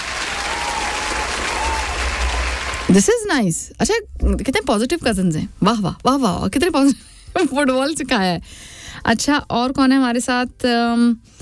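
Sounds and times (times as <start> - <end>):
audience clapping: 0.0 - 3.2
speech: 2.9 - 11.4.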